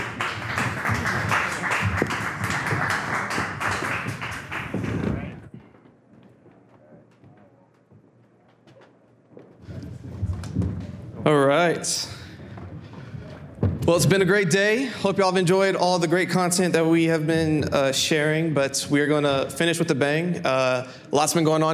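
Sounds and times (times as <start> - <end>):
crowd applause: 0.0 - 5.6
speech: 11.3 - 12.1, 13.9 - 21.7.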